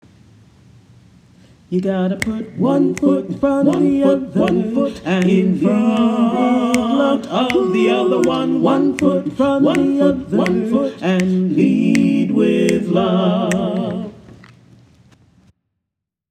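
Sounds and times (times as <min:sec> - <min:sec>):
chorus singing: 0:01.7 - 0:14.4.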